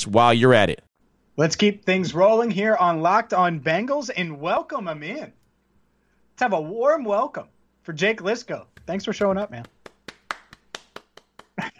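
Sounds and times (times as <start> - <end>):
speech: 0.0 - 5.4, 6.4 - 9.8
person clapping hands: 8.7 - 11.7.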